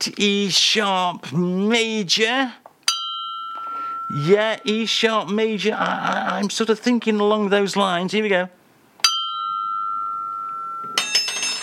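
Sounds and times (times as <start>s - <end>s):
speech: 0.0s - 2.6s, 4.1s - 8.6s
ringing mugs: 2.9s - 4.9s, 9.0s - 11.6s.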